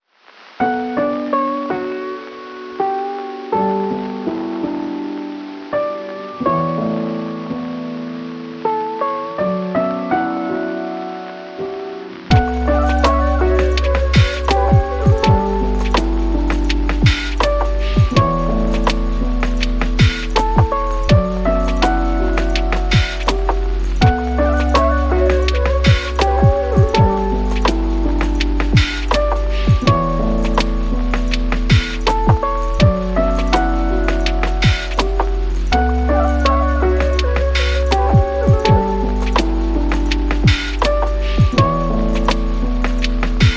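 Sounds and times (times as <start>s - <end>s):
lo-fi piano: 0.2s - 43.5s.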